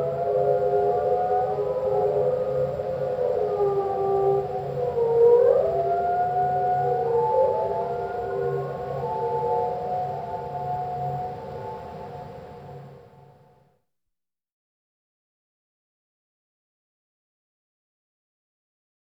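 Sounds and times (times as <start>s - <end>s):
slowed whale song: 0.0s - 13.6s.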